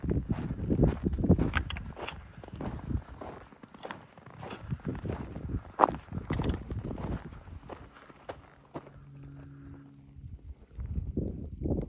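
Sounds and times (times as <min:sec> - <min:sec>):
faint low steady hum: 0:00.0 - 0:11.8
footsteps on packed snow along a hiking trail at Monadnock: 0:00.3 - 0:09.1.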